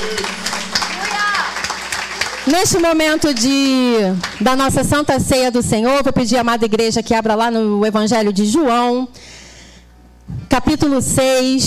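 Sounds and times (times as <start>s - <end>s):
audience applauding: 0.0s - 5.1s
low steady hum: 0.0s - 11.6s
speech: 2.5s - 9.3s, 10.5s - 11.6s.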